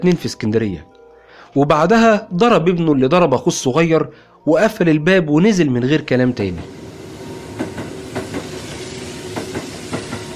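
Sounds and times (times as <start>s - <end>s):
speech: 0.0s - 0.9s, 1.5s - 6.8s
train rumbling on rails: 6.4s - 10.3s
wheels clacking over track joints: 6.6s - 10.3s.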